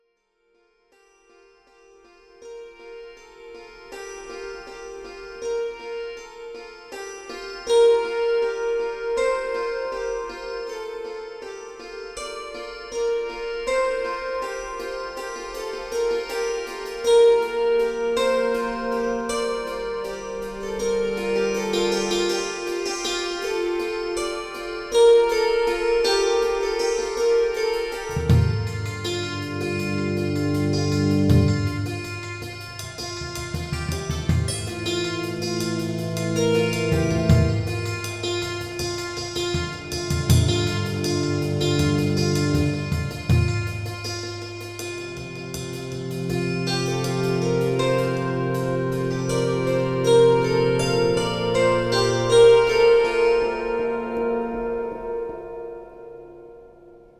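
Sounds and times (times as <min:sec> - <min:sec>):
kantele: 0:02.4 - 0:57.0.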